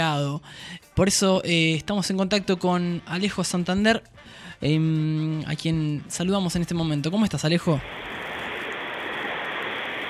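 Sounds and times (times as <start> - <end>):
speech: 0.0 - 8.2
rain during a storm: 7.8 - 10.0.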